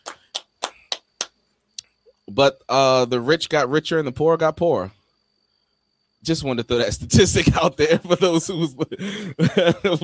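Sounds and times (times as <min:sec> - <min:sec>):
slow hand clapping: 0:00.0 - 0:01.4
speech: 0:02.3 - 0:05.0, 0:06.2 - 0:10.0
laughter: 0:07.9 - 0:10.0.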